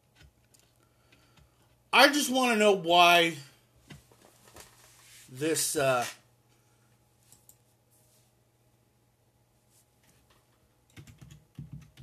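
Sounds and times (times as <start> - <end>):
speech: 2.0 - 3.5, 5.3 - 6.2
typing on a computer keyboard: 10.9 - 12.0.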